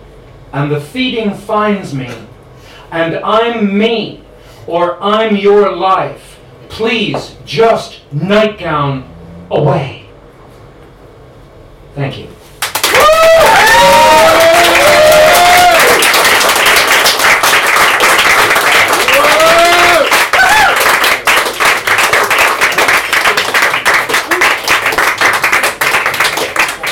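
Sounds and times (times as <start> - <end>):
speech: 0.5 - 2.3, 2.9 - 10.0, 12.0 - 12.4
audience applause after a poetry reading: 12.6 - 26.9.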